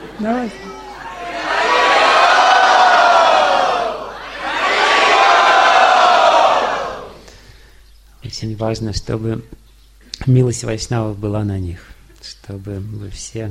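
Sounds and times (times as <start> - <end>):
crowd shouting a blessing: 0.0 - 7.3
speech: 0.2 - 0.8, 8.4 - 9.6, 10.2 - 13.4.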